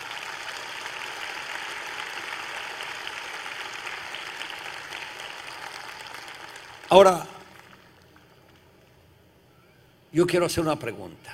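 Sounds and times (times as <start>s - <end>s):
audience applause: 0.0s - 8.7s
speech: 6.9s - 7.3s, 10.2s - 11.3s.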